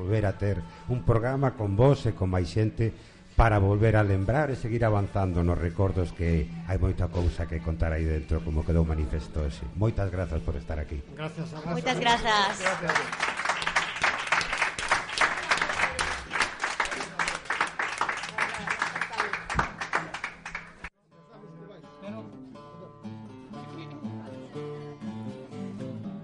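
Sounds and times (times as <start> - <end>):
speech: 0.0 - 13.3
audience applause: 11.9 - 20.9.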